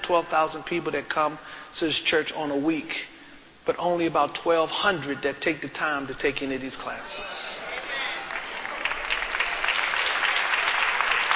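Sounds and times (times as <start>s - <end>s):
speech: 0.1s - 3.1s, 3.7s - 8.1s
audience clapping: 7.7s - 11.3s.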